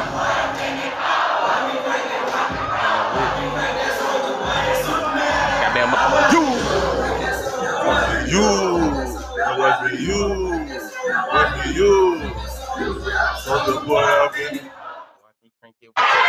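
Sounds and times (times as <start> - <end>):
concert crowd cheering: 0.0 - 10.6, 16.0 - 16.2
laughter: 1.6 - 14.7.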